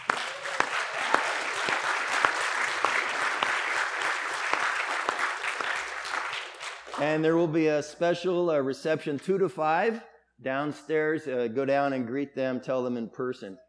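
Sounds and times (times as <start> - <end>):
audience applauding: 0.0 - 7.2
speech: 7.0 - 13.6.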